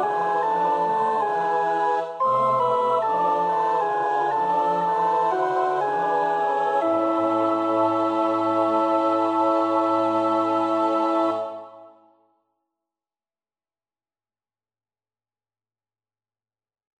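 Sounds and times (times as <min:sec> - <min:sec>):
alto choir part practice singing: 0:00.0 - 0:12.1.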